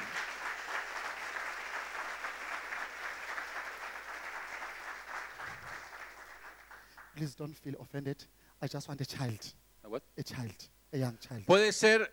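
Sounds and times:
audience applause: 0.0s - 7.2s
speech: 7.2s - 12.1s.

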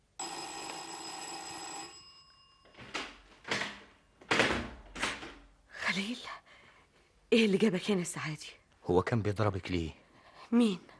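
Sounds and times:
doorbell ringing: 0.2s - 3.4s
speech: 6.0s - 6.4s, 7.3s - 10.9s.

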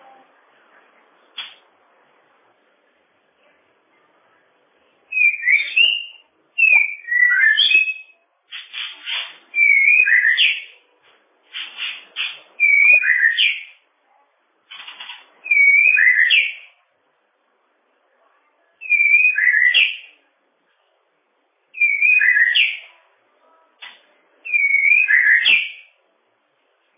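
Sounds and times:
bird song: 5.1s - 10.8s, 11.5s - 13.8s, 14.7s - 16.8s, 18.7s - 20.2s, 21.7s - 23.0s, 23.8s - 26.0s.

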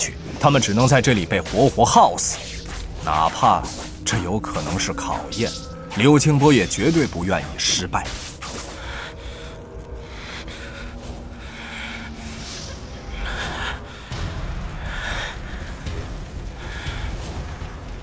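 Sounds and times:
speech: 0.0s - 8.3s
heavy panting breaths: 8.2s - 18.0s.

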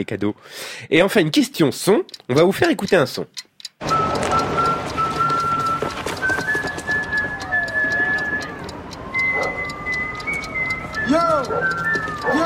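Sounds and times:
speech: 0.0s - 4.0s
person whistling while arriving: 3.9s - 12.4s.

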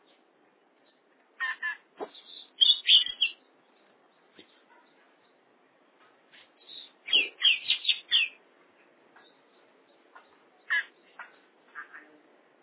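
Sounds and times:
Oriental magpie-robin song: 1.4s - 3.5s, 6.3s - 8.4s, 9.2s - 12.0s.

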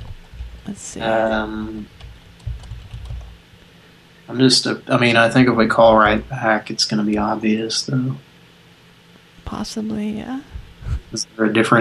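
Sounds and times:
computer keyboard typing during a live game session: 0.0s - 3.4s
speech: 0.7s - 2.0s, 4.3s - 8.3s, 9.5s - 11.7s.

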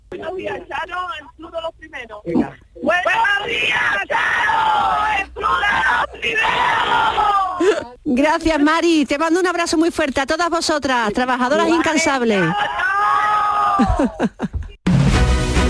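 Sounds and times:
speech: 0.3s - 5.6s, 8.1s - 12.8s, 13.8s - 14.5s
group of women shouting a farewell war cry: 3.0s - 7.7s, 11.6s - 14.2s
laughter: 13.6s - 14.8s.

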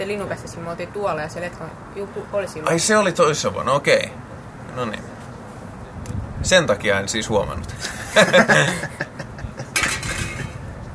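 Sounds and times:
speech: 0.0s - 5.1s, 6.4s - 9.0s
laughter: 7.8s - 9.8s
drink can tipping over: 9.8s - 10.6s.

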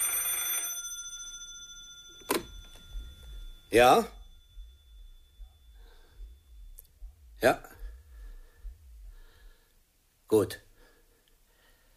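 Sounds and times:
old telephone bell ringing in an inn's taproom: 0.0s - 4.8s
sharp clack of a telephone handset being lifted: 2.0s - 3.0s
speech: 3.7s - 4.2s, 7.4s - 7.7s, 10.4s - 10.6s.

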